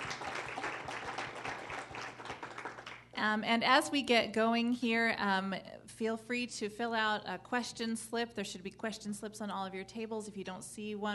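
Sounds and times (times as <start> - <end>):
audience applause: 0.0 - 3.0
speech: 3.2 - 11.1.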